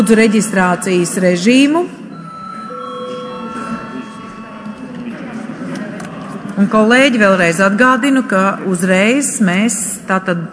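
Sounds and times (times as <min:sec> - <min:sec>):
speech: 0:00.0 - 0:02.0, 0:06.6 - 0:10.5
electric parliament chamber bell ringing: 0:00.0 - 0:05.4
murmur of people talking: 0:00.0 - 0:10.5.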